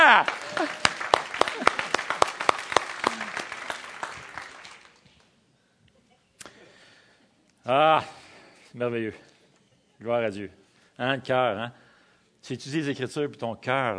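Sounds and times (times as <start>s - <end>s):
audience applause: 0.0s - 5.0s
speech: 8.8s - 9.3s, 10.0s - 11.8s, 12.4s - 13.9s.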